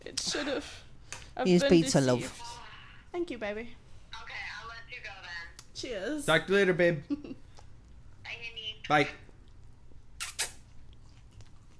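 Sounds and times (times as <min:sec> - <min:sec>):
low steady hum: 0:00.0 - 0:11.7
speech: 0:00.2 - 0:02.5, 0:03.1 - 0:04.2, 0:05.8 - 0:07.4, 0:08.9 - 0:09.2
kissing smacks: 0:10.2 - 0:10.7.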